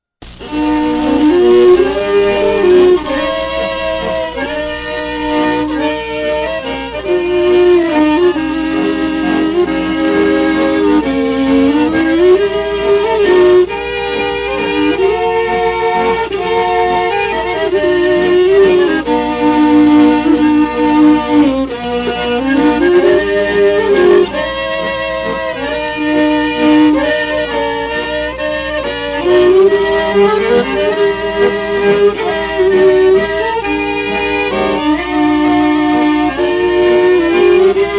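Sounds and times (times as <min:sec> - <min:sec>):
Spanish waltz music: 0:00.2 - 0:37.9.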